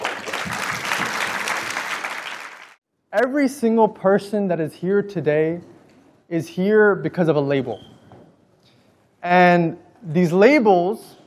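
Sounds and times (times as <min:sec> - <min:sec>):
round of applause from audience: 0:00.0 - 0:02.8
speech: 0:03.1 - 0:05.7, 0:06.3 - 0:07.9, 0:09.2 - 0:11.2.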